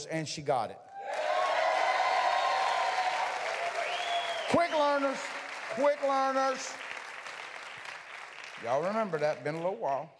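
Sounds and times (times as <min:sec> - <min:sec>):
speech: 0:00.0 - 0:01.4, 0:04.5 - 0:06.8, 0:08.6 - 0:10.1
audience wooing: 0:00.9 - 0:06.0
audience clapping: 0:01.0 - 0:10.1.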